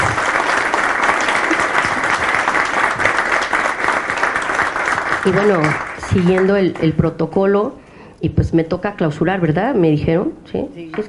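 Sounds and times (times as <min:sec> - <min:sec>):
audience applause: 0:00.0 - 0:06.9
speech: 0:05.2 - 0:11.0.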